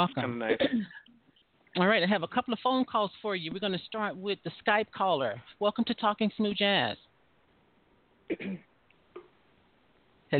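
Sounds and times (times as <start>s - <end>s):
speech: 0.0s - 1.0s, 1.8s - 7.1s, 8.3s - 8.7s
throat clearing: 8.3s - 8.7s.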